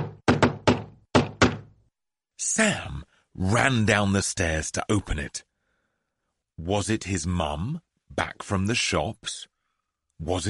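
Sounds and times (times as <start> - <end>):
loud knocking on a door: 0.0 - 1.7
speech: 2.4 - 5.5, 6.6 - 9.5, 10.2 - 10.4.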